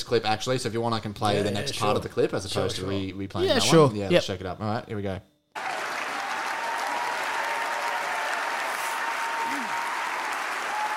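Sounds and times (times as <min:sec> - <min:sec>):
speech: 0:00.0 - 0:05.7
audience clapping: 0:05.6 - 0:10.9.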